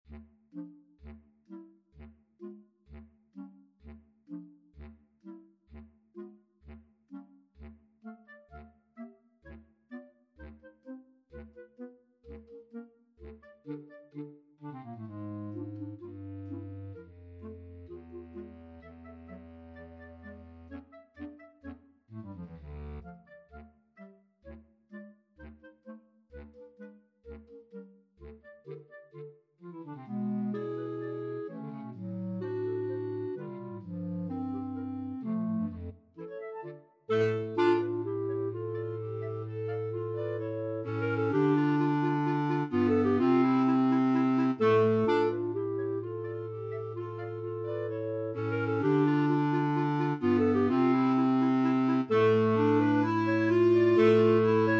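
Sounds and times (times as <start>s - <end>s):
clarinet choir: 10.4s - 21.7s, 28.2s - 54.7s.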